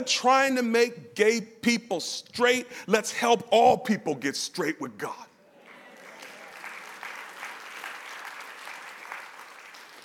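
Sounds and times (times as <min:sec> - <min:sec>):
speech: 0:00.0 - 0:05.3
audience clapping: 0:05.7 - 0:10.0.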